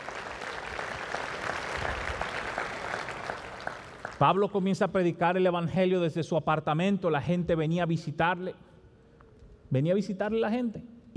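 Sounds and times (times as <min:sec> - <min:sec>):
audience applause: 0:00.0 - 0:04.4
speech: 0:04.2 - 0:08.7, 0:09.7 - 0:11.1.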